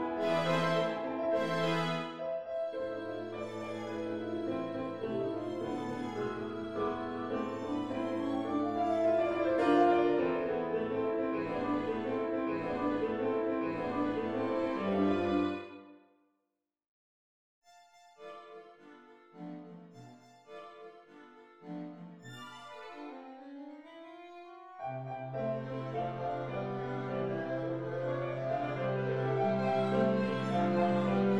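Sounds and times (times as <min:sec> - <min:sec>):
string quartet: 0:00.0 - 0:15.8, 0:18.8 - 0:31.3
piano: 0:00.0 - 0:15.9, 0:24.3 - 0:31.3.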